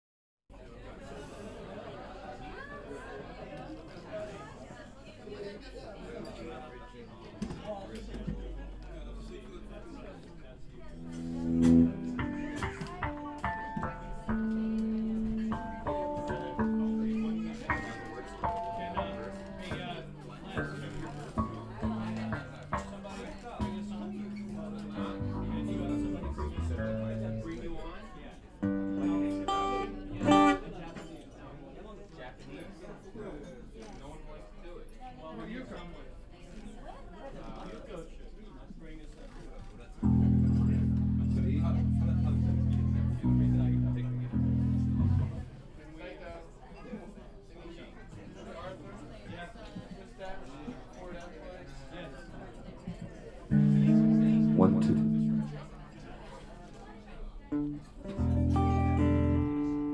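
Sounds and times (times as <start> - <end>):
crowd: 0.5 - 59.9.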